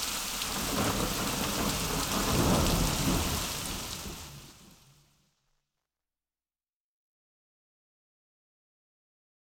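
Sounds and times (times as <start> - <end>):
rain in the city: 0.0 - 5.9
thunder in the city: 0.4 - 5.2.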